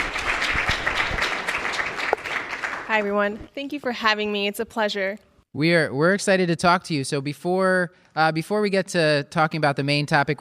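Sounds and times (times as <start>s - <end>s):
audience clapping: 0.0s - 3.5s
speech: 2.9s - 10.3s.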